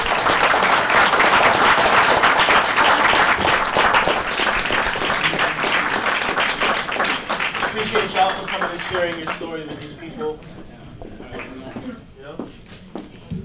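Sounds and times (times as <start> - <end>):
audience applause: 0.0 - 10.1
speech: 8.9 - 10.8.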